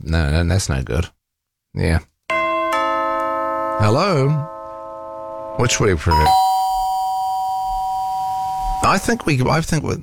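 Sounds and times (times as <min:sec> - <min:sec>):
speech: 0:00.1 - 0:01.2, 0:01.8 - 0:02.1, 0:03.8 - 0:04.5, 0:05.6 - 0:06.5, 0:08.8 - 0:10.0
electronic doorbell chime: 0:02.3 - 0:09.3.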